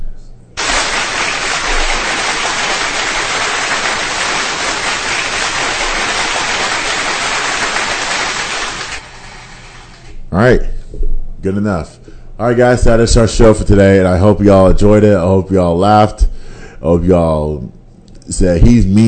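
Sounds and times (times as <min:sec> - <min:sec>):
audience clapping: 0:00.6 - 0:09.1
speech: 0:10.4 - 0:10.7, 0:11.4 - 0:19.0.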